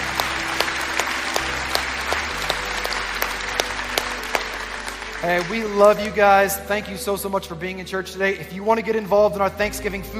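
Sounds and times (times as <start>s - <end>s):
church congregation applauding to welcome new members: 0.0s - 7.6s
speech: 5.2s - 10.1s.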